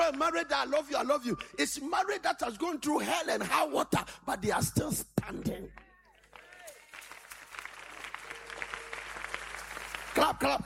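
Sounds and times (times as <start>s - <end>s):
audience clapping: 0.0s - 1.8s, 5.7s - 10.6s
speech: 0.1s - 5.9s, 10.2s - 10.6s.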